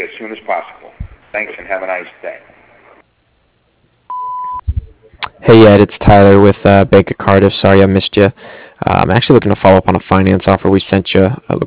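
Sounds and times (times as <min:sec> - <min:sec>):
speech: 0:00.0 - 0:02.6, 0:05.4 - 0:11.6
voicemail beep: 0:04.1 - 0:04.7.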